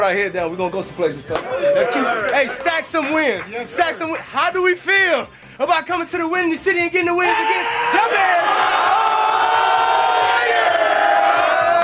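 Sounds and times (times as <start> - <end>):
speech: 0.0 - 8.7
players cheering in locker room: 1.3 - 5.0, 7.0 - 11.8.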